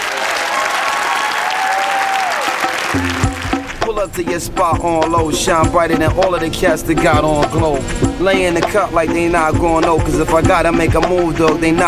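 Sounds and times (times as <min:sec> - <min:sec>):
audience applause: 0:00.0 - 0:03.9
speech: 0:03.9 - 0:11.8.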